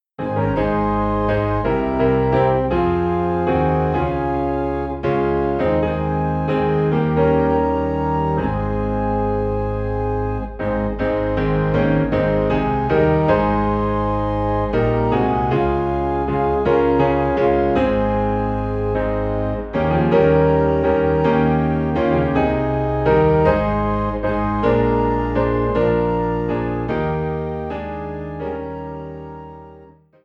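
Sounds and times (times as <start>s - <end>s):
piano in A flat: 0.0s - 30.2s
organ in A flat: 0.2s - 29.7s.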